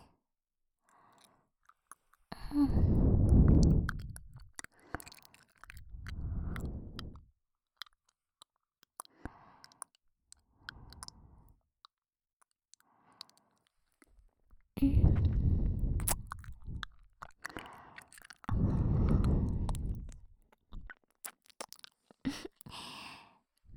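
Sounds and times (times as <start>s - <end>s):
ASMR ear licking sounds: 1.1s - 7.2s, 14.8s - 23.0s.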